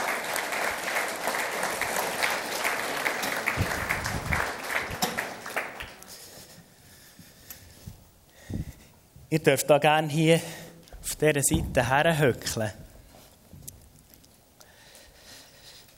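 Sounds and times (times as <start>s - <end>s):
audience applause: 0.0s - 6.3s
speech: 9.3s - 12.8s.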